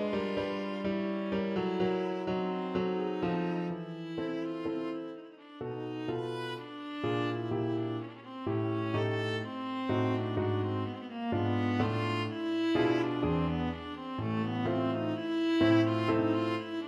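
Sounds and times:
viola playing a mazurka: 0:00.0 - 0:16.8.

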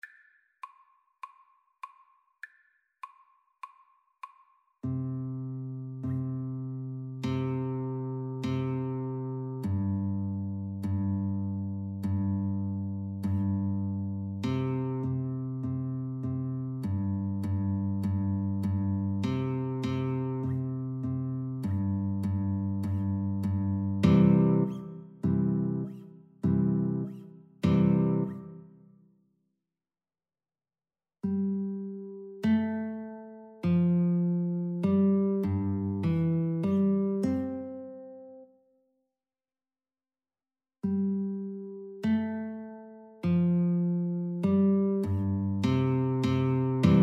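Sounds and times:
guitar duet: 0:04.8 - 0:28.9, 0:31.2 - 0:38.5, 0:40.8 - 0:47.0.

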